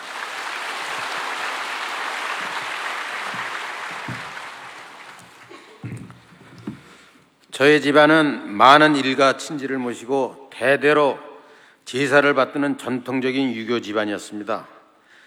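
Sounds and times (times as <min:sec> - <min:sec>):
applause: 0:00.0 - 0:06.7
speech: 0:07.6 - 0:11.3, 0:11.9 - 0:14.7.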